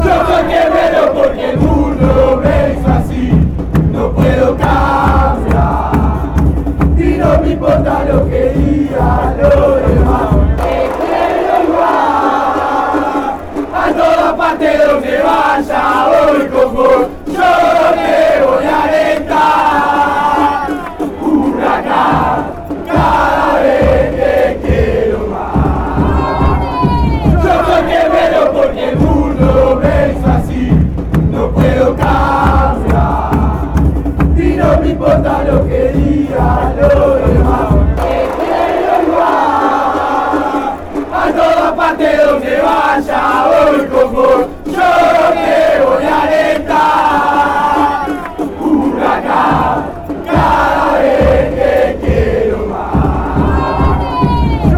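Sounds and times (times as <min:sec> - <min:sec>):
chant: 0:00.0 - 0:54.7.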